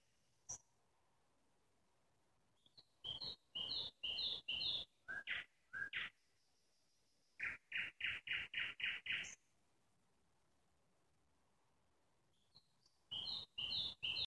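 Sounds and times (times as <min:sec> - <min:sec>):
nightingale singing: 0:02.6 - 0:09.5, 0:12.3 - 0:14.2.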